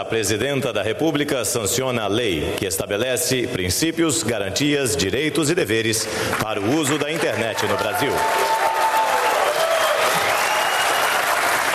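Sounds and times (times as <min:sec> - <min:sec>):
speech: 0:00.0 - 0:08.6
thunderous applause from conference audience: 0:06.2 - 0:11.7.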